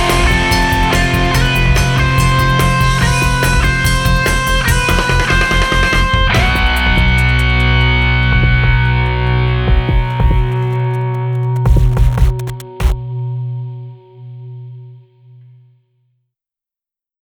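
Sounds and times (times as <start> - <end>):
anxious rock music: 0.0 - 13.0.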